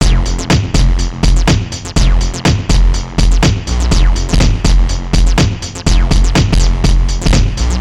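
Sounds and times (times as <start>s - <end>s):
fat acid bass: 0.0s - 7.7s
hi-hat: 0.0s - 7.7s.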